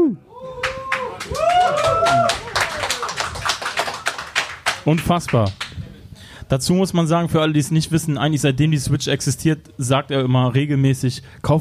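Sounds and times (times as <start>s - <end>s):
vocal whoops: 0.0s - 3.2s
small group clapping: 0.6s - 5.9s
speech: 4.8s - 5.7s, 6.5s - 11.6s.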